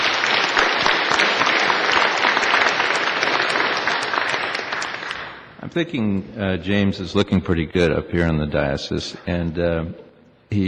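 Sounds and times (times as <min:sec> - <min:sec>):
audience applause: 0:00.0 - 0:05.6
speech: 0:05.8 - 0:10.6.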